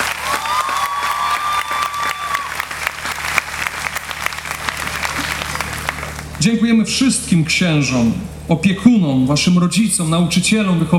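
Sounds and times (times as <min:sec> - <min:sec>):
audience applause: 0:00.0 - 0:06.4
speech: 0:06.4 - 0:10.9.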